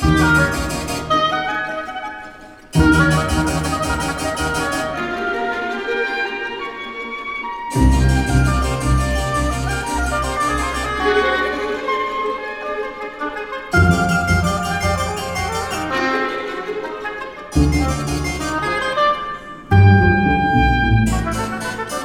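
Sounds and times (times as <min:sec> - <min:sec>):
harpsichord: 0:00.0 - 0:01.9, 0:02.7 - 0:05.3, 0:07.8 - 0:11.9, 0:13.8 - 0:16.8, 0:17.5 - 0:22.0
oboe: 0:00.0 - 0:22.0
string ensemble: 0:00.0 - 0:22.0.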